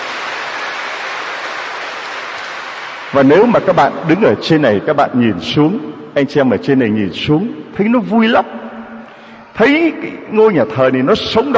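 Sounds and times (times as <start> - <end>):
warm applause from church audience: 0.0 - 3.9
speech: 3.1 - 8.6, 9.6 - 11.5.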